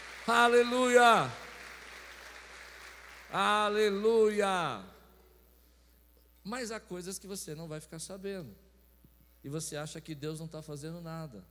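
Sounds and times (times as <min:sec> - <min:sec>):
audience applause: 0:00.0 - 0:03.8
speech: 0:00.3 - 0:01.4, 0:03.3 - 0:04.9, 0:06.4 - 0:08.6, 0:09.4 - 0:11.4.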